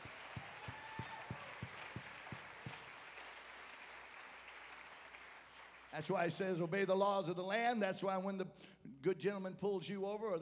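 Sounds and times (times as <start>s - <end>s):
audience clapping hands: 0.0s - 6.3s
speech: 6.0s - 10.4s.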